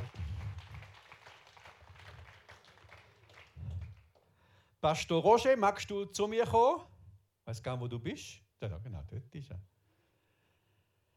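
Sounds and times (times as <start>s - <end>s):
audience applause: 0.0s - 4.2s
speech: 4.8s - 6.9s, 7.5s - 9.7s.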